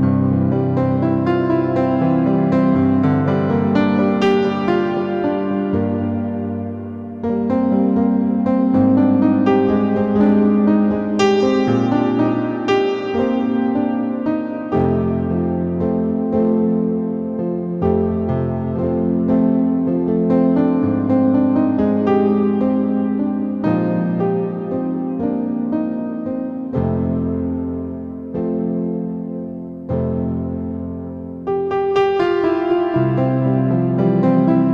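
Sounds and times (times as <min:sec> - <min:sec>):
piano: 0:00.0 - 0:34.7.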